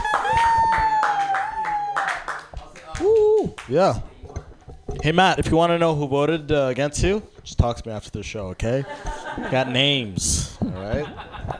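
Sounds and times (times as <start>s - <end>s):
high whoop: 0.0s - 2.4s, 3.0s - 3.6s
comedy club audience clapping for a comedian: 0.0s - 4.0s
speech: 3.7s - 4.1s, 5.0s - 11.2s
laughter: 8.7s - 11.5s.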